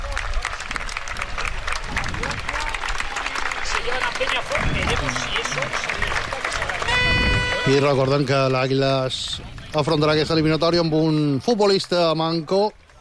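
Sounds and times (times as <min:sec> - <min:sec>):
stadium crowd applause: 0:00.0 - 0:12.9
speech: 0:03.9 - 0:07.1, 0:07.7 - 0:12.8.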